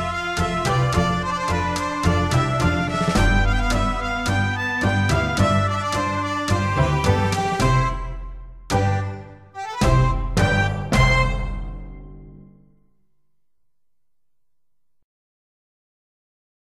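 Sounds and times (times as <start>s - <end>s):
tango music: 0.0s - 12.5s.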